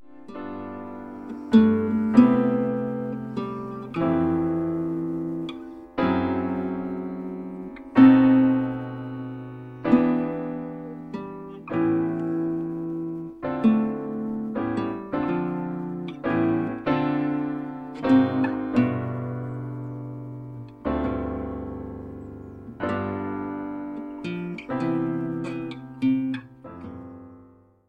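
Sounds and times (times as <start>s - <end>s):
guitar chords: 0.0s - 27.8s.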